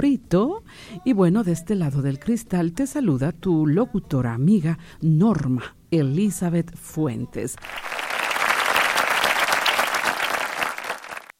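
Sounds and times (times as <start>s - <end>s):
speech: 0.0s - 8.0s
crowd applause: 7.6s - 11.3s.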